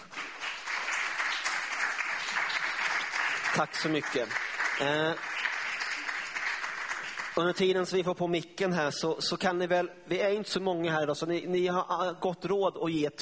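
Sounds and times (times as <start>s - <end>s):
crowd applauding: 0.0s - 7.6s
speech: 3.6s - 5.3s, 7.4s - 13.1s.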